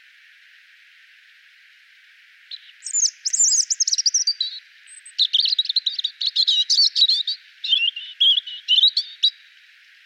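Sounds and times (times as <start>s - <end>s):
European robin song: 2.5s - 9.5s.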